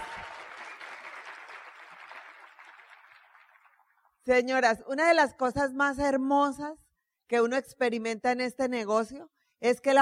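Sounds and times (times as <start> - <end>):
sustained crowd applause: 0.0 - 4.0
speech: 4.2 - 10.0.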